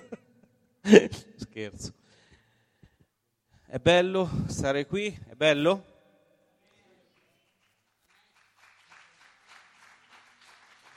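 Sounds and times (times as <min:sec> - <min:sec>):
speech: 0:00.9 - 0:02.0, 0:03.7 - 0:05.9
audience applause: 0:07.6 - 0:10.9.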